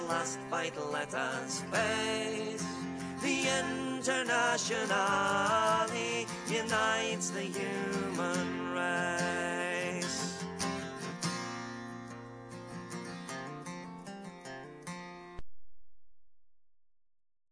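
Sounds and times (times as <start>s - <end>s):
person singing: 0.0s - 10.4s
guitar: 0.0s - 15.4s.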